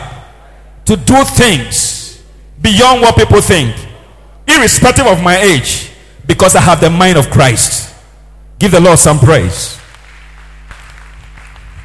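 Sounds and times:
speech: 0.9 - 2.0, 2.6 - 3.9, 4.5 - 7.9, 8.6 - 9.8
crowd clapping: 9.8 - 11.8.

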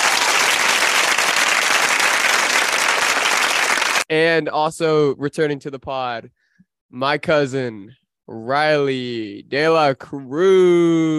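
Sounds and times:
clapping: 0.0 - 4.1
speech: 4.1 - 11.1.

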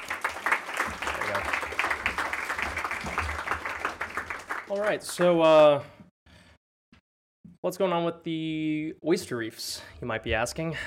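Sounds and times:
audience applauding: 0.0 - 5.8
speech: 4.7 - 6.0, 7.7 - 10.8.

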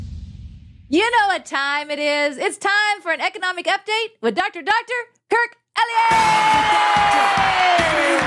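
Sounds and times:
speech: 0.9 - 8.2
audience cheering at a live event: 6.1 - 8.2.

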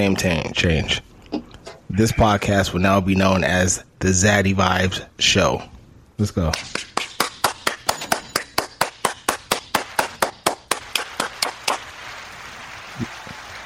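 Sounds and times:
speech: 0.0 - 1.1, 1.9 - 6.9
steady clapping: 6.5 - 13.6.

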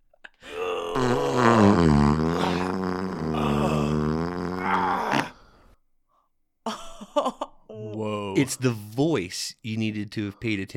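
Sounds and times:
long drawn-out fart: 0.6 - 5.4
speech: 8.4 - 10.7.

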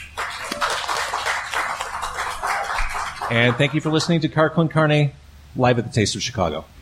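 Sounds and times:
audience applause: 0.0 - 4.2
speech: 3.3 - 6.8.

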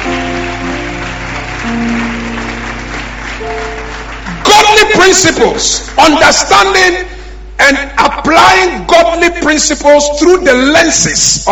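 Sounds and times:
audience clapping: 0.0 - 7.0
sustained keyboard chords: 0.0 - 7.6
speech: 1.7 - 2.0, 5.0 - 7.1, 7.7 - 11.4.

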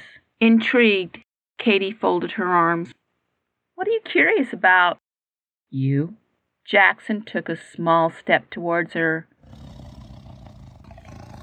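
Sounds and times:
speech: 0.4 - 3.0, 3.8 - 5.0, 5.7 - 9.7
low animal growl: 9.4 - 11.4.

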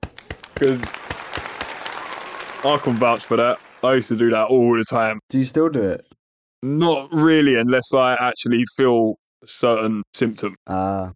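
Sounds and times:
hand clapping: 0.0 - 4.1
speech: 0.6 - 1.0, 2.6 - 11.1.

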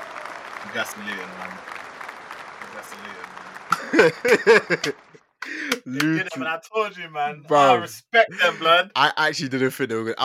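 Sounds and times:
sharp loud clap: 0.0 - 6.4
round of applause: 0.0 - 6.5, 7.5 - 8.8
speech: 0.6 - 1.8, 2.8 - 10.2
laughter: 0.7 - 1.6, 2.7 - 10.2.

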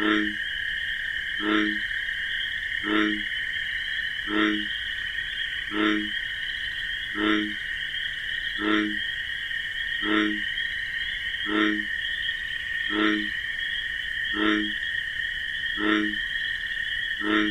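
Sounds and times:
bullfrog croaking: 0.0 - 17.4
crickets droning: 0.0 - 17.4.

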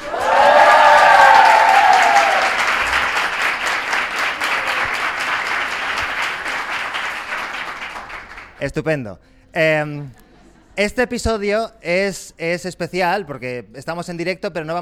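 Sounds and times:
crowd applause and ovation: 0.0 - 8.6
speech: 8.6 - 10.2, 10.8 - 14.8.

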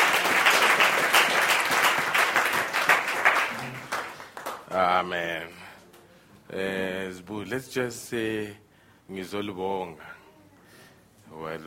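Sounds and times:
audience round of applause: 0.0 - 4.6
speech: 4.8 - 5.6, 6.5 - 10.2, 11.3 - 11.6.

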